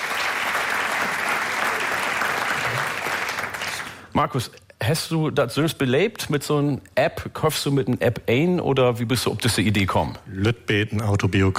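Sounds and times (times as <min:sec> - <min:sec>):
crowd applauding: 0:00.0 - 0:04.1
speech: 0:04.2 - 0:11.5.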